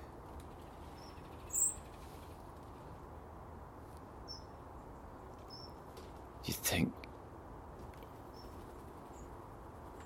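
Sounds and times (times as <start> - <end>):
small birds chirping: 0.0 - 3.2, 3.9 - 7.0, 7.9 - 10.0
speech: 6.4 - 7.0.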